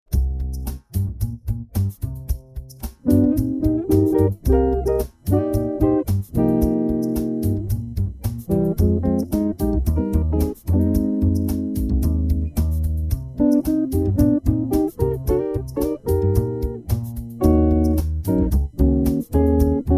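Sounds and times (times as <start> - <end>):
jazz music: 0.1 - 19.9.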